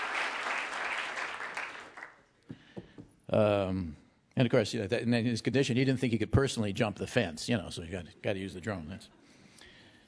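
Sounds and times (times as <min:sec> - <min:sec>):
audience applause: 0:00.0 - 0:02.2
speech: 0:03.3 - 0:09.3.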